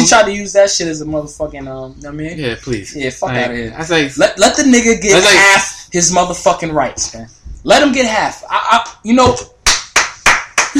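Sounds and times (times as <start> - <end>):
speech: 0.0 - 9.5
hand clapping: 9.3 - 10.7.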